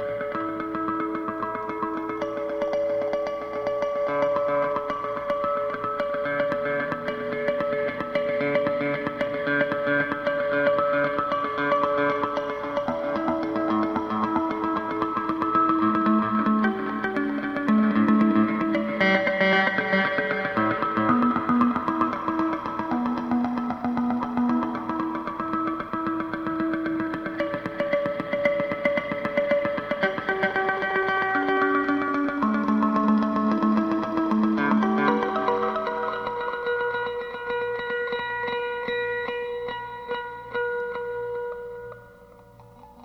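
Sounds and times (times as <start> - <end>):
harmonics with delay: 0.0 - 43.0.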